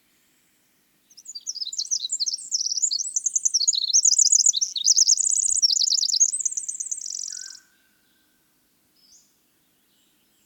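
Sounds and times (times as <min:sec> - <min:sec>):
winter wren song: 0:01.1 - 0:07.7.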